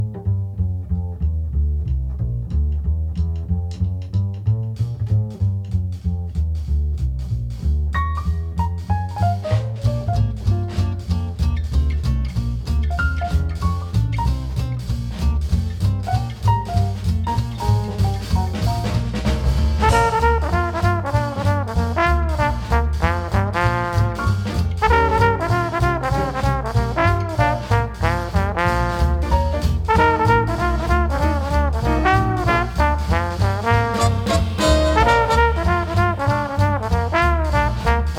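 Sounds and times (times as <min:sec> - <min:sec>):
gentle forest jazz: 0:00.0 - 0:38.1.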